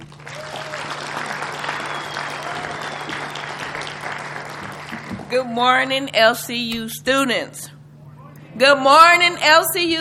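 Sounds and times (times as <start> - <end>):
audience applause: 0.0 - 5.3
speech: 5.3 - 7.8, 8.6 - 9.9.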